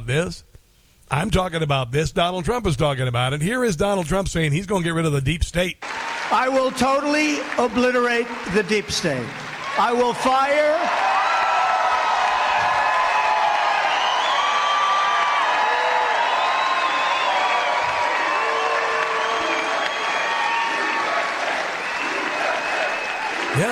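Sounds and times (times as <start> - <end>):
speech: 0.1 - 0.5, 1.1 - 11.0
large rally crowd applauding: 5.8 - 23.7.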